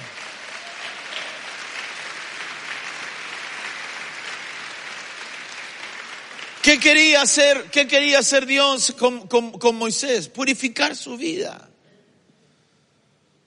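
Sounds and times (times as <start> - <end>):
audience clapping: 0.0 - 7.6
speech: 6.6 - 11.7.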